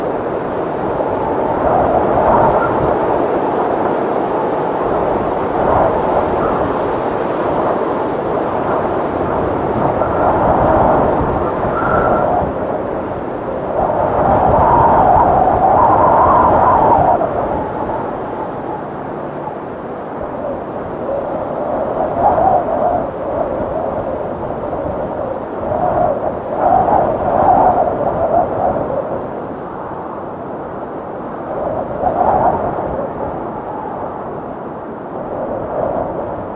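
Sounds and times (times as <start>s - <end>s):
wind gusts: 0.0s - 36.5s.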